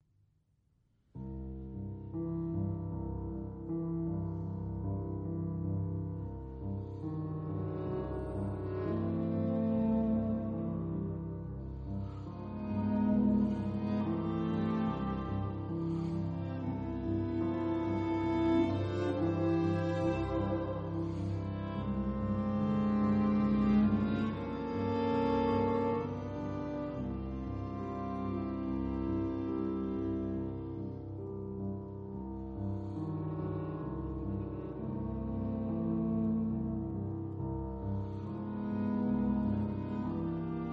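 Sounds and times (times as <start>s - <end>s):
piano quartet: 1.2s - 40.7s.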